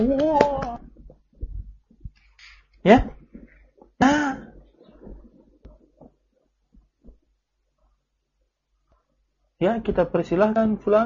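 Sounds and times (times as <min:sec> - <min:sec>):
hand clapping: 0:00.0 - 0:01.3
speech: 0:02.8 - 0:03.2, 0:09.6 - 0:11.0.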